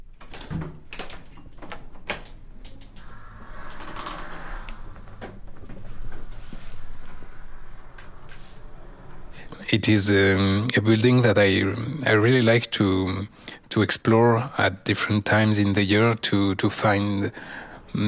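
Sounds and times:
university building fire door opening and closing: 0.0 - 9.3
speech: 9.7 - 18.0.

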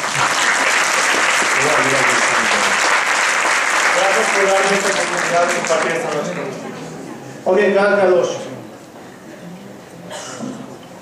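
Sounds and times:
audience applause: 0.0 - 6.7
speech: 4.3 - 6.7, 7.4 - 8.5.

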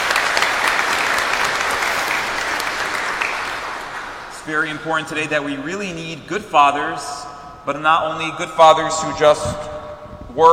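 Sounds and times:
crowd applauding: 0.0 - 4.7
speech: 4.5 - 9.7.

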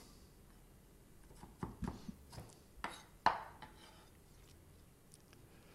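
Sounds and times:
knife chopping onions on a board: 1.2 - 3.9.

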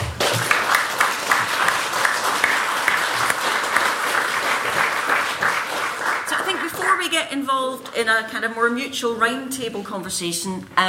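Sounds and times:
audience applauding to welcome a panel of speakers: 0.0 - 7.1
speech: 7.3 - 10.8.

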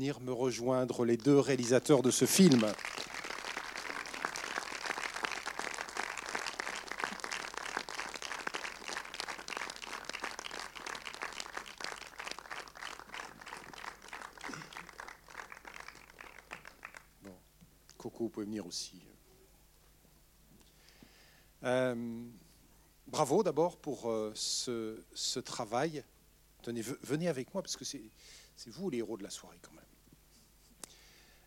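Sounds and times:
speech: 0.0 - 3.1, 18.7 - 19.2, 21.6 - 22.4, 23.1 - 29.9
audience applause: 1.2 - 17.1.

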